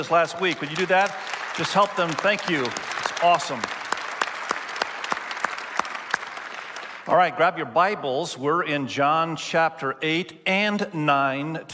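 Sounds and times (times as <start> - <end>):
speech: 0.0 - 3.8, 7.1 - 11.7
church congregation clapping to welcome new members: 0.0 - 7.2.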